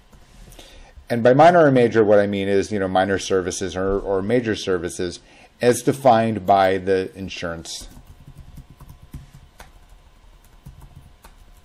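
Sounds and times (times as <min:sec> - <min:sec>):
low hum: 0:00.0 - 0:11.6
speech: 0:01.1 - 0:08.0
typing on a computer keyboard: 0:07.8 - 0:11.6.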